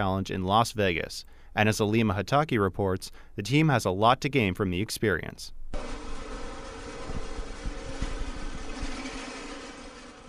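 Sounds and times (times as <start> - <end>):
speech: 0.0 - 6.0
drill press running in a design and technology classroom: 5.8 - 10.2.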